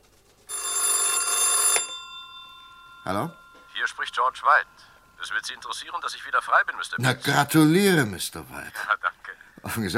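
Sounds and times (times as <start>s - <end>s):
telephone bell ringing for an incoming call: 0.5s - 6.0s
speech: 3.1s - 9.9s.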